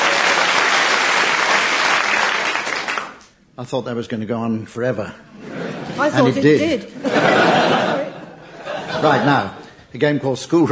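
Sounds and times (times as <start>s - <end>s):
studio audience applause: 0.0s - 3.2s
speech: 3.6s - 7.8s, 9.0s - 10.7s
laughter: 5.4s - 9.8s.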